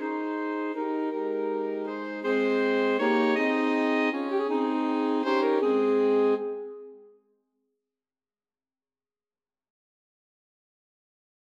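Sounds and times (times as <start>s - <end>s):
alto saxophone quartet: 0.0s - 7.0s.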